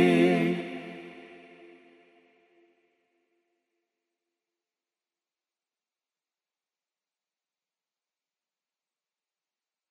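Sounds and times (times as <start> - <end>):
Vocaloid synthesized voice singing a Christmas carol: 0.0 - 2.0.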